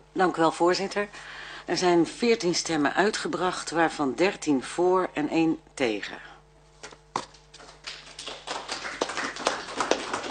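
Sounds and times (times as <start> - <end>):
speech: 0.2 - 6.3
applause: 7.6 - 10.2.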